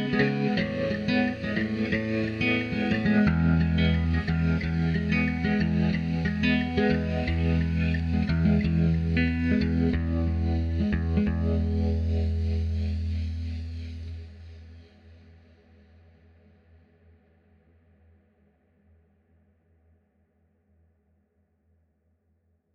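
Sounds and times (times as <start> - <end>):
guitar: 0.0 - 15.8.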